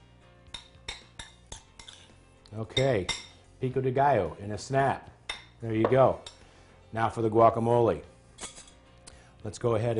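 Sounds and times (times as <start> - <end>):
spoon clinking against a bowl mixing pico de gallo: 0.5 - 2.1, 2.7 - 3.4
speech: 2.5 - 6.3, 6.9 - 8.1, 9.4 - 9.9.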